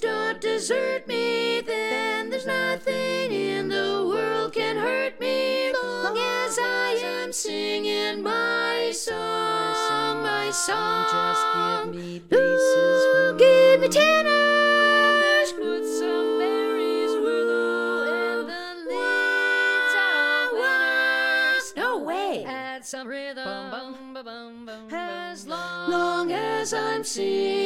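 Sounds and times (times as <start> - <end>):
tenor singing: 0.0 - 27.6.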